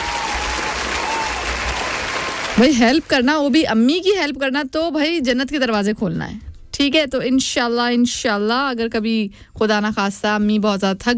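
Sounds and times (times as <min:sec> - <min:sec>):
group applauding a child: 0:00.0 - 0:03.3
speech: 0:02.6 - 0:11.1.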